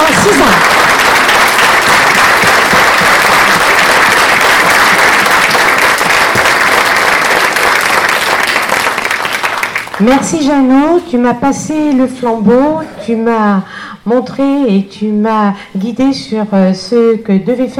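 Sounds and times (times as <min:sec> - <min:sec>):
audience applause: 0:00.0 - 0:10.0
speech: 0:10.0 - 0:17.7.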